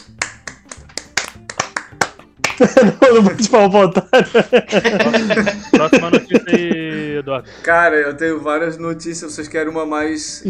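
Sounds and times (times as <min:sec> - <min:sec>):
hand clapping: 0:00.0 - 0:02.9
laughter: 0:02.5 - 0:07.3
speech: 0:02.6 - 0:10.4.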